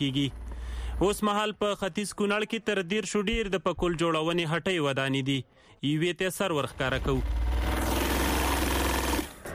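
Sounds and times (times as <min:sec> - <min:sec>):
speech: 0:00.0 - 0:00.4, 0:01.0 - 0:07.4
sewing machine stitching a pakol hat in a Kunar shop: 0:06.8 - 0:09.4.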